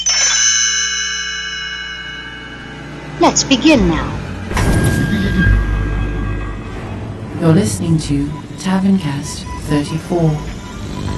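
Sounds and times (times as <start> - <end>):
page-turn chime on read-along record: 0.0 - 7.3
speech: 3.2 - 5.0, 7.4 - 10.6.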